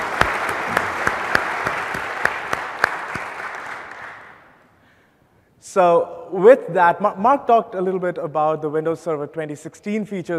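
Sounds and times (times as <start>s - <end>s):
audience applause: 0.0s - 4.4s
speech: 5.8s - 10.3s.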